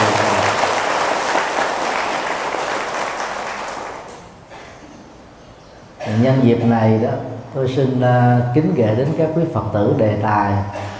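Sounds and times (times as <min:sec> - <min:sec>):
audience applause: 0:00.0 - 0:04.4
speech: 0:06.2 - 0:10.9.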